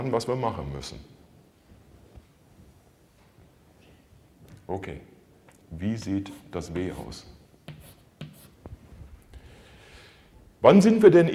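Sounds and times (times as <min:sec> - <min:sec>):
speech: 0:00.0 - 0:01.2, 0:04.7 - 0:05.1, 0:05.7 - 0:07.4, 0:10.6 - 0:11.3
handwriting scratches: 0:07.6 - 0:08.6.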